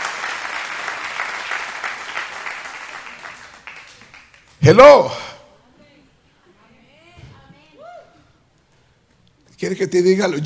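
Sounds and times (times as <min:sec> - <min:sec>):
audience clapping: 0:00.0 - 0:04.7
speech: 0:04.6 - 0:05.3, 0:09.8 - 0:10.4.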